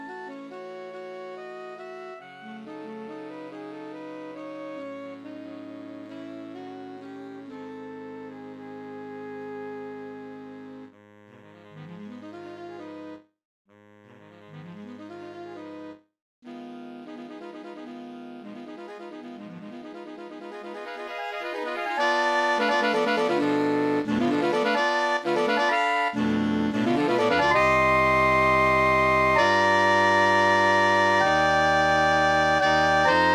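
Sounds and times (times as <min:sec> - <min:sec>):
MIDI music: 0:20.4 - 0:33.3.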